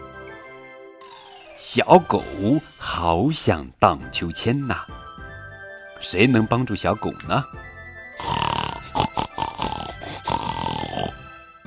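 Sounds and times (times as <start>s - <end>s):
speech: 1.6s - 5.0s, 6.0s - 8.4s
pig grunting: 8.2s - 11.2s.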